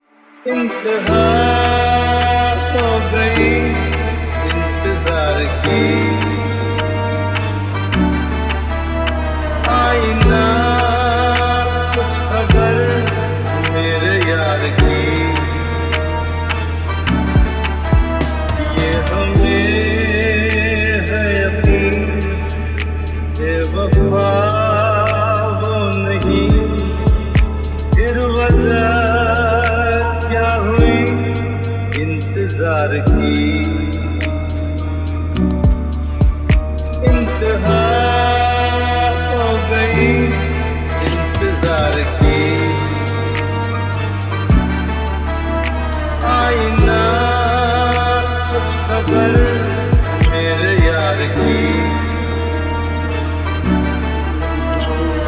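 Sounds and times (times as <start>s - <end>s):
lofi trap music: 0.4s - 55.2s.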